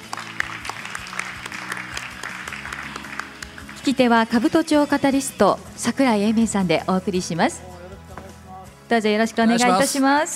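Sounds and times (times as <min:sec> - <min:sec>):
audience applause welcoming a guest: 0:00.0 - 0:04.0
speech: 0:03.8 - 0:07.7, 0:08.9 - 0:10.3.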